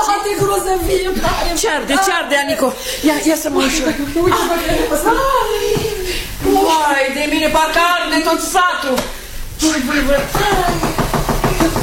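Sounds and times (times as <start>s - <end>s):
speech: 0.6s - 10.9s
knocking on a window: 10.1s - 11.8s.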